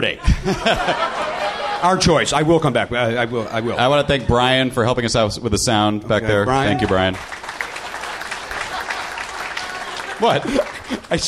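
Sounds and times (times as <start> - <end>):
speech: 0.0 - 1.2, 1.8 - 7.4, 10.2 - 11.2
laughter: 0.0 - 4.6, 6.7 - 11.2
audience clapping: 6.6 - 11.2.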